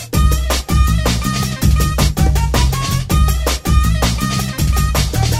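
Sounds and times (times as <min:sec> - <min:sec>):
tropical jungle dance music: 0:00.1 - 0:05.3.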